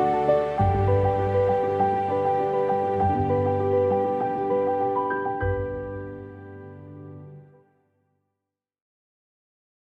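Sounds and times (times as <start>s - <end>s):
inspiring piano with strings: 0.0s - 7.6s.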